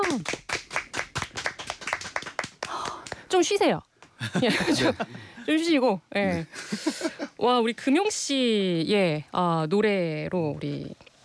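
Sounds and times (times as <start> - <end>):
audience clapping after a sung performance: 0.0 - 3.4
speech: 0.1 - 0.4, 3.3 - 11.0
laughter: 4.2 - 5.3.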